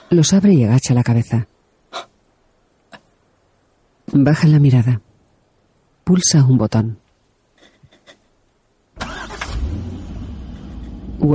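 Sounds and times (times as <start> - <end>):
speech: 0.1 - 2.1, 4.2 - 5.1, 6.1 - 7.0
car driving quickly: 9.0 - 11.3.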